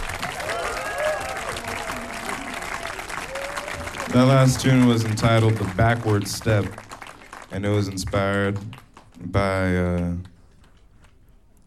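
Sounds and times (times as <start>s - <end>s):
audience cheering: 0.0s - 8.8s
audience applause after a live music performance: 0.0s - 11.2s
speech: 4.1s - 6.8s, 7.5s - 10.3s.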